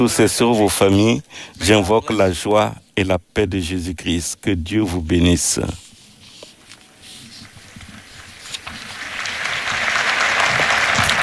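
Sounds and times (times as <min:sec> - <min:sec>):
speech: 0:00.0 - 0:05.8
crowd of pilgrims applauding: 0:08.9 - 0:11.2.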